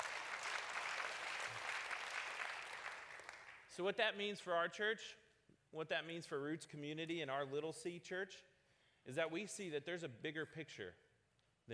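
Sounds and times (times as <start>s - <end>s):
audience clapping: 0.0s - 3.7s
speech: 3.8s - 11.0s.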